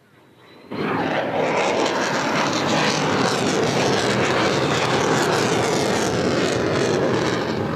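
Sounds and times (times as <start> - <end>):
F-35 fighter jets roaring past: 0.0 - 7.7.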